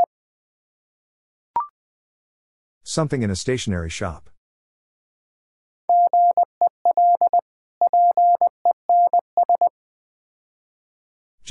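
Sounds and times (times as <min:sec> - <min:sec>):
speech: 0:02.9 - 0:04.3
Morse code tones at 20 wpm: 0:05.9 - 0:09.7.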